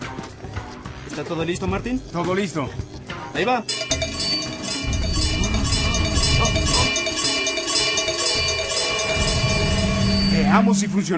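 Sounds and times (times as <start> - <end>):
speech: 1.2 - 4.0, 10.5 - 11.1
cowbell ringing: 3.7 - 11.0.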